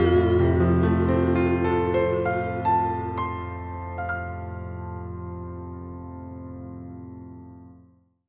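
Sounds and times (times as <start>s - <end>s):
woman singing: 0.0s - 2.6s
piano: 0.0s - 8.2s.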